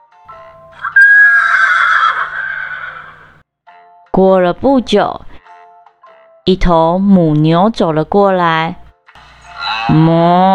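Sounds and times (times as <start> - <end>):
horse neighing: 0.7 - 3.4
speech: 4.2 - 5.3, 6.4 - 8.8, 9.9 - 10.5.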